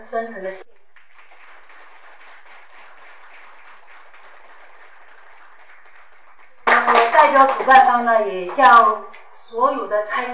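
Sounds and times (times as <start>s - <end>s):
speech: 0.1s - 0.7s, 7.3s - 10.3s
audience applause: 1.0s - 7.1s.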